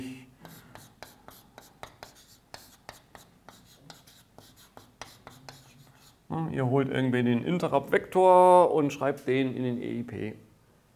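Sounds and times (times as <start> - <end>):
pen writing by hand as notes are jotted down: 0.4 - 6.2
speech: 6.3 - 10.5.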